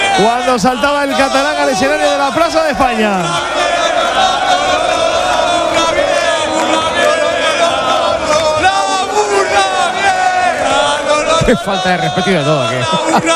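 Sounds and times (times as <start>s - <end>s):
crowd chanting at a concert: 0.0s - 13.3s
speech: 0.2s - 5.0s, 11.4s - 13.3s
laughter: 10.7s - 13.3s.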